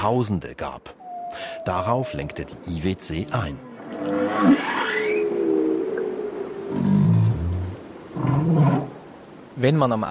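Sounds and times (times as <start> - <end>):
speech: 0.0 - 4.9, 8.2 - 8.9, 9.6 - 10.0
whale songs recorded underwater: 1.0 - 9.1.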